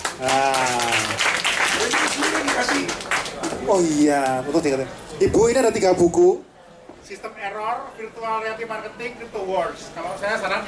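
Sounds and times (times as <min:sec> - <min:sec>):
audience applause: 0:00.0 - 0:03.9
speech: 0:00.2 - 0:00.7, 0:03.7 - 0:10.6.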